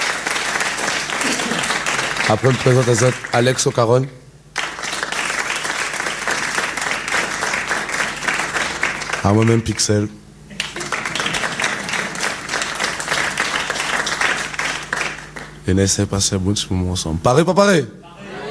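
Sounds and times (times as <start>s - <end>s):
audience applause: 0.0s - 3.7s, 4.5s - 9.7s, 10.5s - 15.6s
speech: 2.3s - 4.2s, 9.2s - 10.3s, 15.7s - 18.0s.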